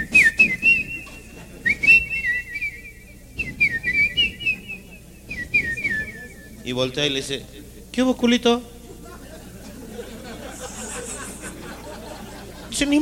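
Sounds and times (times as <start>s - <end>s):
person whistling in imitation of a bird: 0.0s - 6.7s
laughter: 0.6s - 6.9s, 8.8s - 13.0s
speech: 6.7s - 8.7s, 12.8s - 13.0s.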